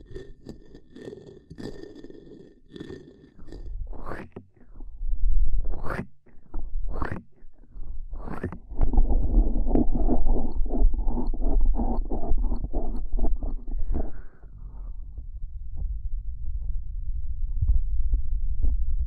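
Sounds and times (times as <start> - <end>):
rumbling press: 3.7 - 19.0
hands rubbing and crackling over the ears: 8.2 - 14.4.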